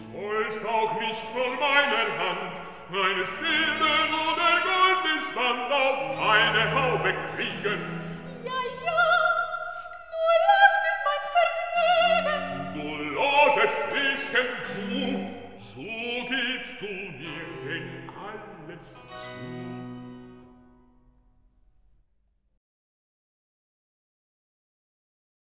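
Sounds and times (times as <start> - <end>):
bass and soprano singing recitative: 0.0 - 19.2.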